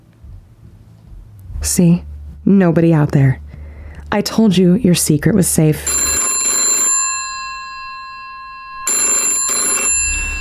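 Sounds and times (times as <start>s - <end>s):
speech: 1.6s - 3.4s, 4.1s - 5.9s
telephone bell ringing: 5.8s - 10.3s.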